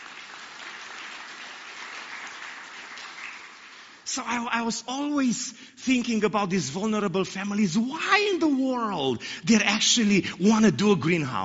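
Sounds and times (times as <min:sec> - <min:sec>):
audience applause: 0:00.0 - 0:04.0
speech: 0:04.1 - 0:11.4.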